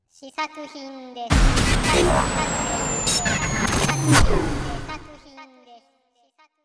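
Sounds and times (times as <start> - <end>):
sound effect: 1.3 - 5.2.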